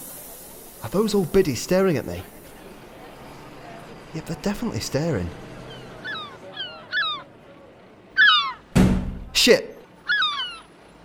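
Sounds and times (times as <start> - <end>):
speech: 0.8 - 2.4, 4.1 - 5.4, 9.4 - 9.7
seagull call: 5.6 - 7.4, 8.2 - 8.7, 10.0 - 10.9.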